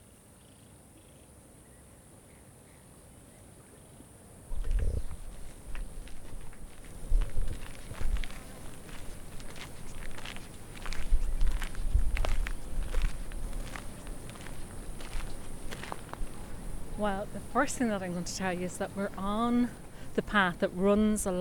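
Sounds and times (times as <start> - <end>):
low hiss: 0.0 - 21.3
footsteps crunching along a gravelly river path: 4.5 - 20.0
speech: 17.0 - 21.3.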